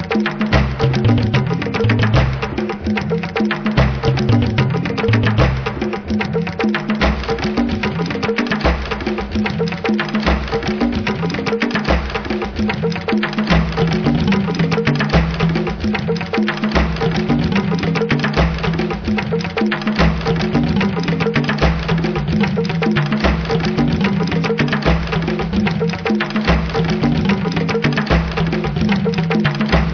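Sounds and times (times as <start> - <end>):
tribal music: 0.0 - 29.9.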